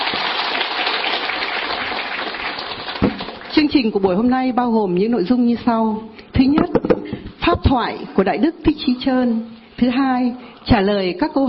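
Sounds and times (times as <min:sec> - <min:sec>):
crowd clapping: 0:00.0 - 0:03.6
speech: 0:03.6 - 0:06.8, 0:07.5 - 0:11.4.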